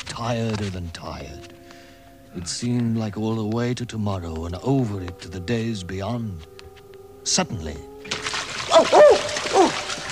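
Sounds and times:
speech: 0.2s - 1.6s, 2.3s - 6.6s, 7.2s - 9.0s
splash into icy cold water of a pool or lake: 8.0s - 10.1s.

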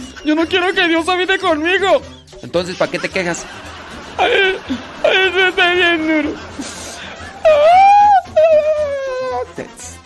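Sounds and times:
speech: 0.2s - 6.8s, 7.4s - 7.9s, 9.6s - 10.0s
laughter: 2.7s - 9.4s
person crying and whimpering: 4.1s - 9.6s.

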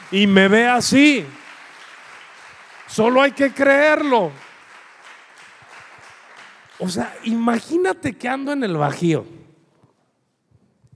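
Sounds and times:
audience applause: 0.0s - 7.6s
speech: 0.1s - 1.4s, 2.9s - 4.4s, 6.8s - 9.4s.

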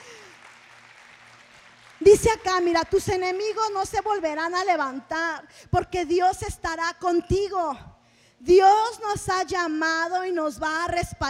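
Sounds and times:
audience applauding: 0.0s - 3.7s
speech: 2.0s - 11.2s.

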